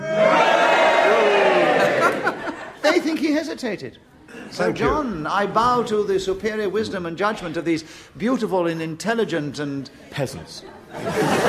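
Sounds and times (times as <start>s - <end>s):
studio audience at a panel game cheering: 0.0s - 2.4s
laughter: 1.5s - 3.3s, 10.8s - 11.4s
speech: 3.4s - 11.4s.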